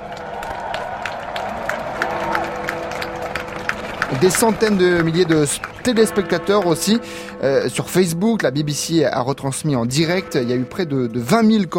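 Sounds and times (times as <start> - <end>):
crowd clapping and cheering: 0.0 - 7.4
speech: 4.2 - 11.7.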